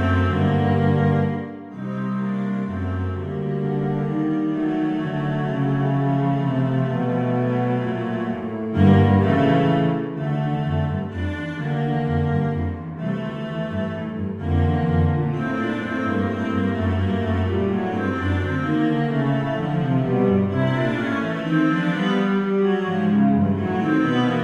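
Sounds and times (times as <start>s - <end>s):
cello duet: 0.0s - 24.4s.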